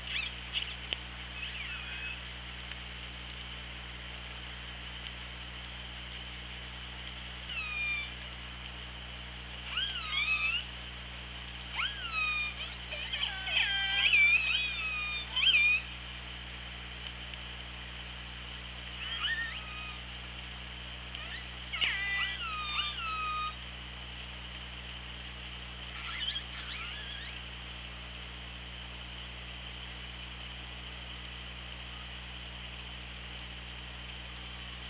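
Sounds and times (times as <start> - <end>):
low hydrophone hum: 0.0 - 34.8
killer whale calls: 11.8 - 15.9, 19.0 - 20.0, 21.2 - 23.6, 25.9 - 27.4.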